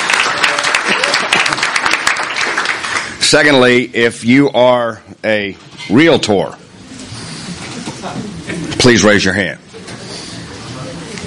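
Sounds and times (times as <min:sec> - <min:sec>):
audience applause: 0:00.0 - 0:03.2
speech: 0:03.3 - 0:06.6, 0:08.0 - 0:09.6.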